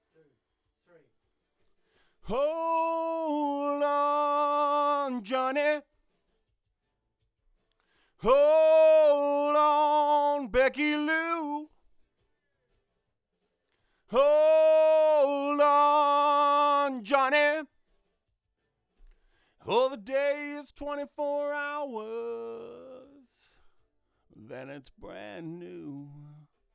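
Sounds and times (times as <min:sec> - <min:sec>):
vocals: 0:02.0 - 0:06.0, 0:08.0 - 0:11.8, 0:14.1 - 0:17.8, 0:19.4 - 0:26.7.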